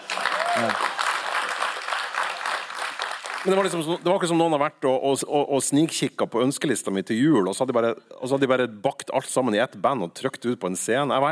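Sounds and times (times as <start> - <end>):
voiced cheer or call: 0.0 - 1.4
live audience applauding: 0.0 - 4.0
speech: 0.6 - 0.9, 3.4 - 11.3.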